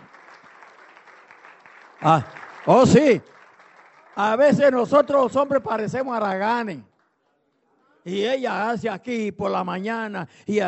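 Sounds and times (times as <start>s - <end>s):
crowd applause: 0.0s - 6.1s
speech: 2.0s - 3.4s, 4.2s - 6.9s, 8.0s - 10.6s.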